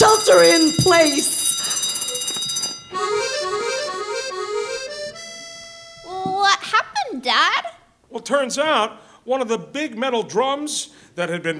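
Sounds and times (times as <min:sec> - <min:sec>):
air monitor contamination alarm: 0:00.0 - 0:06.6
speech: 0:00.3 - 0:01.8, 0:08.2 - 0:11.5.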